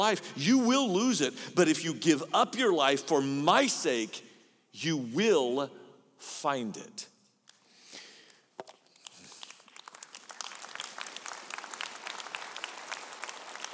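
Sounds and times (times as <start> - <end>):
speech: 0.0 - 7.1
audience clapping: 8.2 - 13.7.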